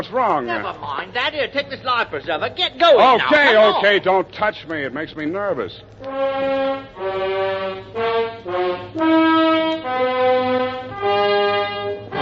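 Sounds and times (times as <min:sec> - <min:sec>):
speech: 0:00.0 - 0:09.4
ship's alarm horn: 0:06.1 - 0:12.1.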